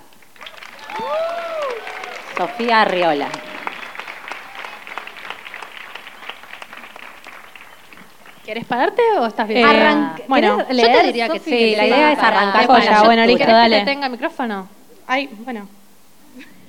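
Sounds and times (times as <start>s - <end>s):
audience applause: 0.0s - 9.1s
speech: 2.4s - 3.4s, 8.5s - 15.8s.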